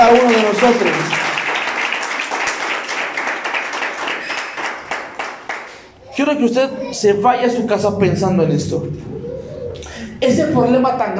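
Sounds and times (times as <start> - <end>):
speech: 0.0 - 1.3, 6.2 - 9.2, 10.2 - 11.1
audience applauding: 0.0 - 5.9.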